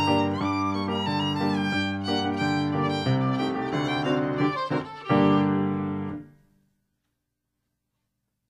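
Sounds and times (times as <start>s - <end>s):
klezmer freilach dance music: 0.0s - 6.2s.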